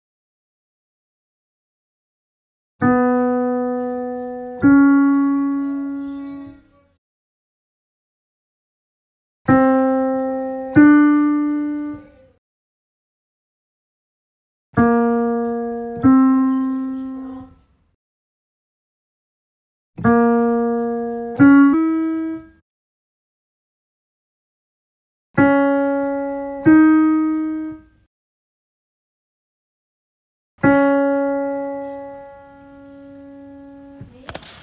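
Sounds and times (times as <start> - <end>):
piano: 2.8 - 7.0, 9.5 - 12.4, 14.8 - 17.7, 20.0 - 22.6, 25.4 - 28.1, 30.6 - 34.6.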